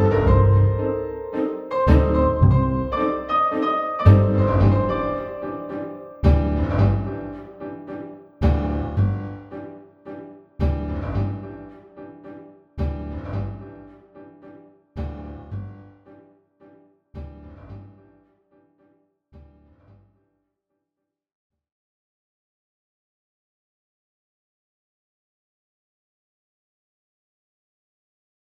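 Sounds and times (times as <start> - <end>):
tango music: 0.0 - 18.2.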